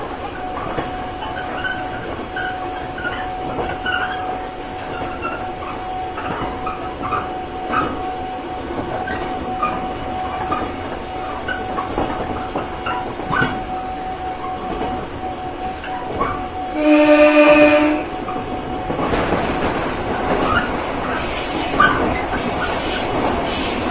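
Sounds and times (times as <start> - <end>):
train: 0.0 - 23.8.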